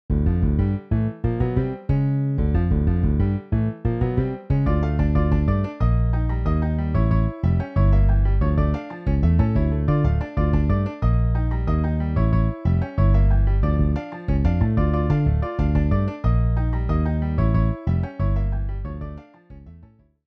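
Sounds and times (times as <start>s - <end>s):
MIDI piano and bass: 0.0s - 20.2s.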